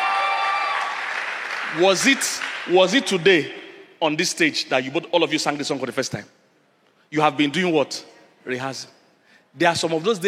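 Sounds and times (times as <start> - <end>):
audience clapping: 0.0 - 3.2
speech: 1.7 - 6.4, 7.1 - 10.2.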